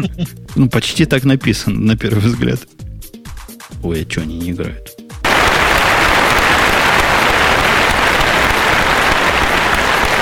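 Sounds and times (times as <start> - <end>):
speech: 0.0 - 2.8, 3.8 - 5.0
applause: 5.2 - 10.1.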